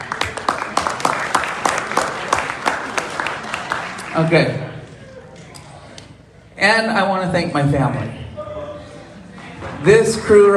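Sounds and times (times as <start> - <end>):
crowd clapping together: 0.0 - 5.5
speech: 4.2 - 4.6, 6.6 - 8.2, 9.8 - 10.5.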